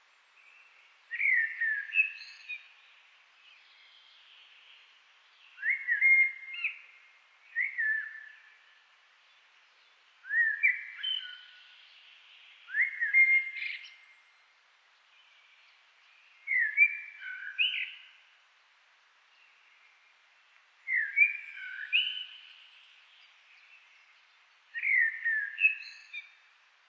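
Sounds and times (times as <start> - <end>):
Eurasian blackbird song: 0.4 - 2.8, 5.4 - 8.8, 9.8 - 14.2, 15.2 - 18.2, 20.8 - 26.4.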